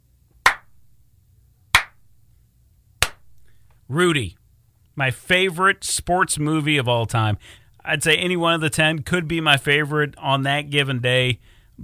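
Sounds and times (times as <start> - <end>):
slow clap: 0.4 - 0.8, 1.8 - 2.0, 3.0 - 3.5
speech: 3.9 - 4.4, 5.0 - 11.8.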